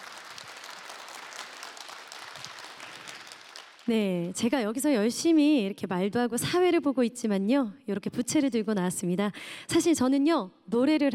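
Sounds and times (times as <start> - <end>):
audience applause: 0.0 - 3.9
speech: 3.9 - 11.1.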